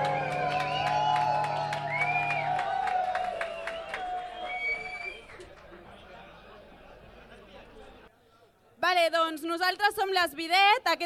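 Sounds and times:
audience applause and cheering: 0.0s - 5.8s
speech: 9.0s - 11.0s.

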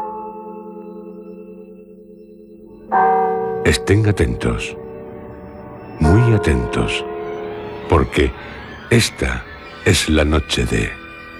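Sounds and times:
bells ringing: 0.0s - 11.3s
speech: 2.9s - 4.8s, 6.2s - 7.1s, 7.9s - 11.3s.

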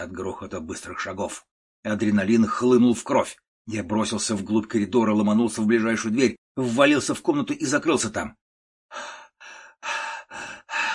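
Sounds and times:
speech: 0.0s - 9.2s
man breathing rapidly and heavily with eyes shut: 8.9s - 10.9s.

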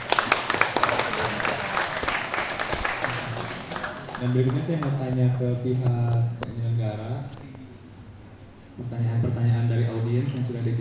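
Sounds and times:
audience applause for speakers at a contemporary art award talk: 0.0s - 5.0s
speech: 4.2s - 7.4s, 8.8s - 10.7s.

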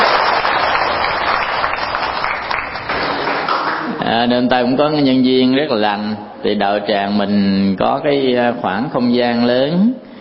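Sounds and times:
audience applause: 0.0s - 4.0s
speech: 4.2s - 10.1s.

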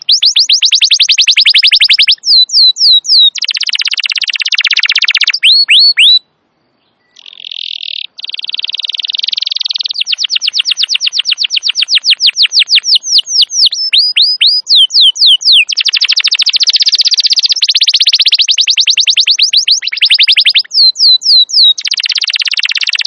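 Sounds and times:
Atlantic canary singing: 0.0s - 23.0s.

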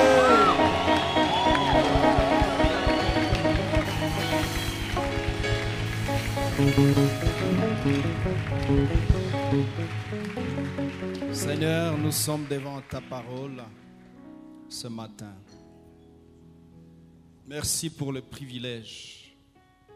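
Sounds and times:
audience cheering with shouts of joy: 0.0s - 12.6s
speech: 12.1s - 13.8s, 14.8s - 15.6s, 17.5s - 19.2s.

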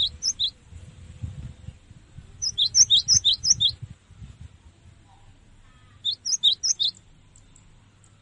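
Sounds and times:
cinereous tit song for training cage birds: 0.0s - 0.6s, 2.4s - 3.8s, 6.0s - 7.0s.

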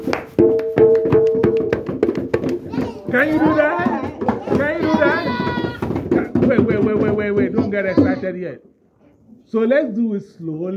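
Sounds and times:
hand claps in a rhythm exercise: 0.0s - 7.8s
drum beats in a rhythm exercise: 0.0s - 8.5s
speech: 3.1s - 3.8s, 6.8s - 8.7s, 9.5s - 10.7s.

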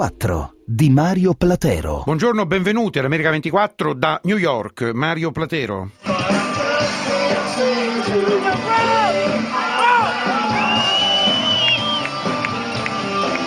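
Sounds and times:
speech: 0.0s - 6.5s
crowd cheering at the New York Marathon finish line: 6.1s - 13.4s
whoops and shouts: 8.6s - 12.1s.

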